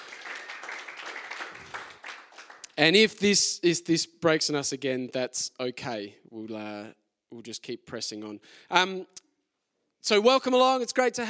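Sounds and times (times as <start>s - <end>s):
audience applause: 0.0s - 2.7s
speech: 2.8s - 9.2s, 10.0s - 11.2s.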